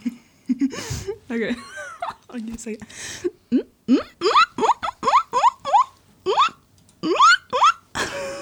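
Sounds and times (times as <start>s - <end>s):
speech: 1.3s - 4.1s
person imitating guinea pig squeaks: 3.9s - 7.9s.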